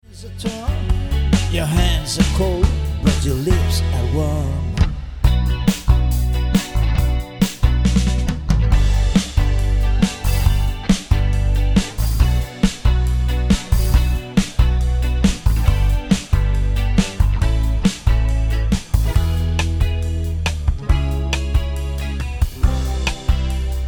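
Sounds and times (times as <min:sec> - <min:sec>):
guitar: 0:00.0 - 0:23.8.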